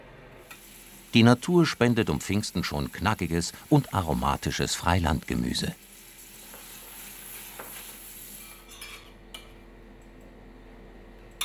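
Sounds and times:
spring onions and gnocchi sizzling in butter in a pan: 0.4 - 9.0
speech: 1.2 - 5.9.

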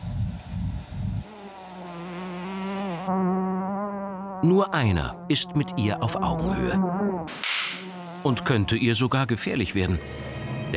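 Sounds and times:
fly buzzing: 1.2 - 8.9
speech: 3.1 - 3.3, 4.4 - 7.5, 8.2 - 10.7.

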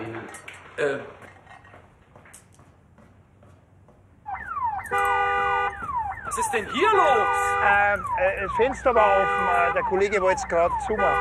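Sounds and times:
speech: 0.3 - 1.2, 6.4 - 11.1
car alarm with falling electronic sweeps and warbling tone: 4.2 - 11.1.

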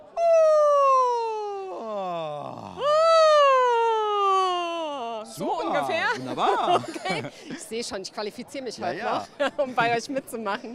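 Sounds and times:
loud yawn gliding from high to low: 0.2 - 5.2
laughter: 5.5 - 7.7
speech: 5.5 - 10.7.

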